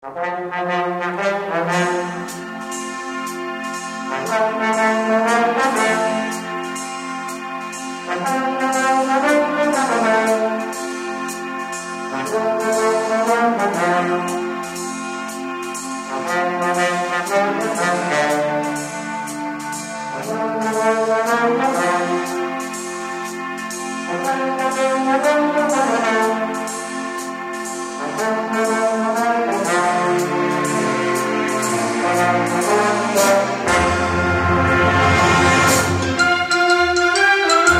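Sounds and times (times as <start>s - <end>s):
instrumental music: 0.0s - 37.7s.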